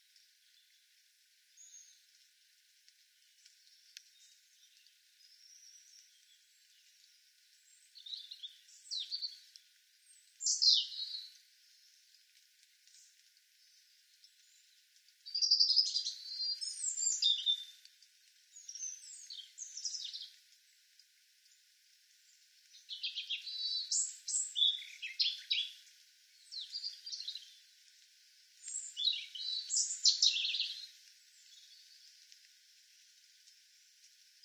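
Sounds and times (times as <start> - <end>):
European robin singing: 7.7 - 11.3, 14.4 - 17.8, 18.5 - 20.4, 22.7 - 27.6, 28.6 - 32.2.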